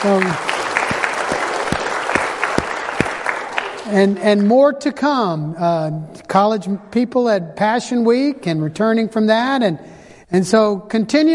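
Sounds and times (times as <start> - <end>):
speech: 0.0 - 0.5, 3.9 - 11.3
church congregation applauding a girl's baptism: 0.0 - 4.6.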